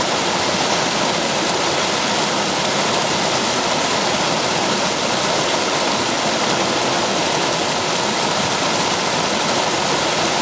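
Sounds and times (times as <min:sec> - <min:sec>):
mountain stream rushing: 0:00.0 - 0:10.4.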